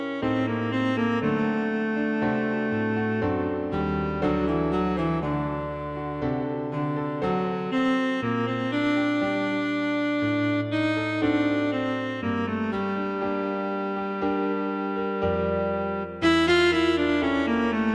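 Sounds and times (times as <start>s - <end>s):
cello in a slow sonata movement: 0.0s - 17.9s
piano accompanying a cello sonata: 0.0s - 17.9s.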